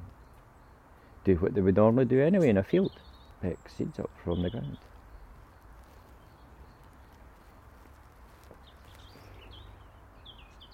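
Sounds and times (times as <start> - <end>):
speech: 1.2 - 4.9
bird chirps: 2.4 - 10.7.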